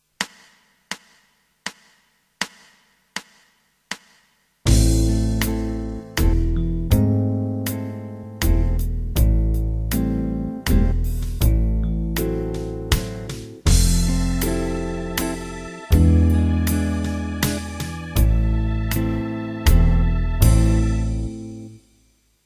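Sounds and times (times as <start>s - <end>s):
E dotted minim notes: 4.7s - 21.8s.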